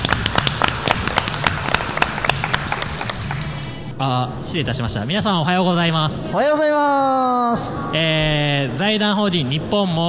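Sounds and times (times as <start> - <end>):
audience applause: 0.0 - 3.7
speech: 4.0 - 10.0.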